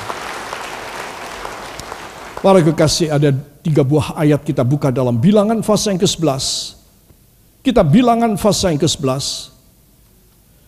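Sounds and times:
audience applause: 0:00.0 - 0:02.8
speech: 0:02.4 - 0:06.8, 0:07.6 - 0:09.5.

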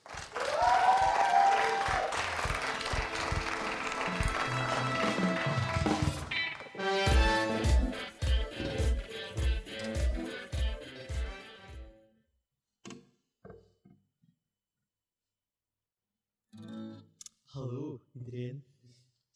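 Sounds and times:
audience applause: 0:00.0 - 0:07.2
music with rhythmic low notes and sustained tones: 0:02.2 - 0:12.2, 0:16.6 - 0:17.2.

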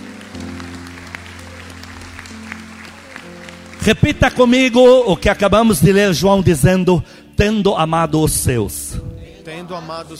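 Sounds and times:
crowd applauding: 0:00.0 - 0:06.1
speech: 0:03.9 - 0:10.1.

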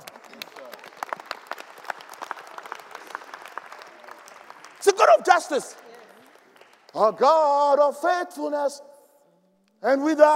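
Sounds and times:
audience applause: 0:00.0 - 0:07.2
speech: 0:04.8 - 0:05.9, 0:06.9 - 0:08.9, 0:09.8 - 0:10.3.

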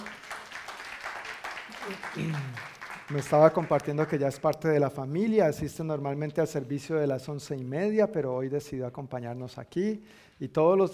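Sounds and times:
room full of people applauding: 0:00.0 - 0:04.6
speech: 0:01.8 - 0:10.9.

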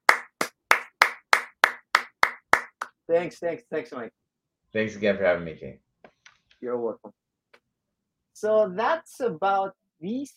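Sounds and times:
clapping: 0:00.0 - 0:03.0
speech: 0:03.1 - 0:05.9, 0:06.6 - 0:07.2, 0:08.4 - 0:10.3.

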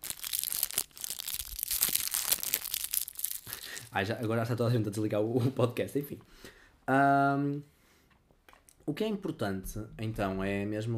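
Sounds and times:
plastic orange juice bottle crinkled and squeezed: 0:00.0 - 0:04.0
speech: 0:03.9 - 0:07.7, 0:08.9 - 0:10.9.

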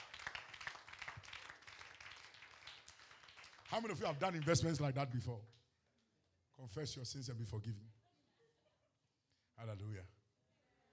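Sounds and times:
audience clapping: 0:00.0 - 0:05.2
speech: 0:03.7 - 0:05.6, 0:06.6 - 0:08.0, 0:09.6 - 0:10.2.

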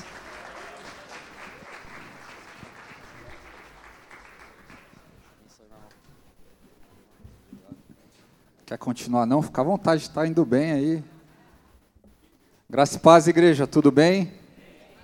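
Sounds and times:
audience applause: 0:00.0 - 0:05.6
speech: 0:08.7 - 0:11.1, 0:12.8 - 0:14.4.

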